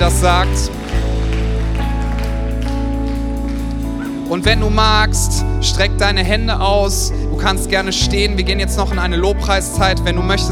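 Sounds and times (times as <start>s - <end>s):
speech: 0.0s - 0.8s, 4.3s - 10.5s
crowd applauding: 0.0s - 5.4s
sustained low instrumental chord: 0.0s - 10.5s.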